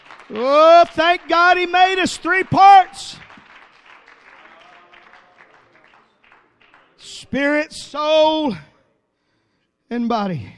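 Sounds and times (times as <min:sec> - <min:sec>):
audience applauding: 0:00.0 - 0:07.2
speech: 0:00.3 - 0:03.2, 0:07.2 - 0:08.7, 0:09.9 - 0:10.5.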